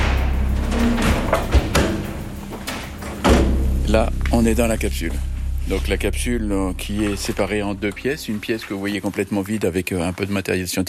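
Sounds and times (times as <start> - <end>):
heavy armored blast door thudding shut: 0.0 - 8.2
low rumbling background: 0.0 - 9.9
speech: 3.9 - 10.8.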